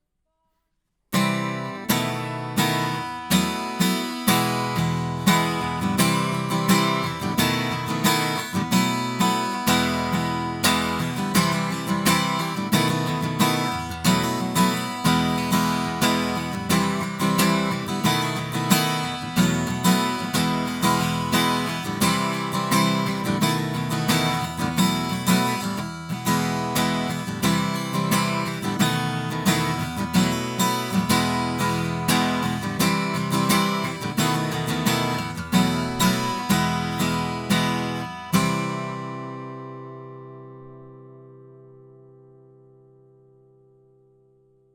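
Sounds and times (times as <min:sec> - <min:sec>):
acoustic guitar: 0:01.1 - 0:44.7.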